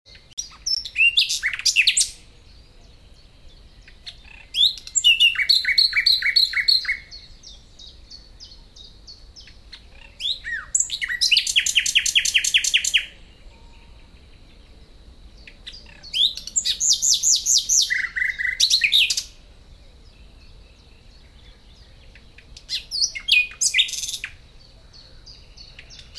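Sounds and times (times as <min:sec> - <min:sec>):
common nightingale singing varied phrases: 0:00.1 - 0:26.1
faint background birds: 0:00.1 - 0:26.1.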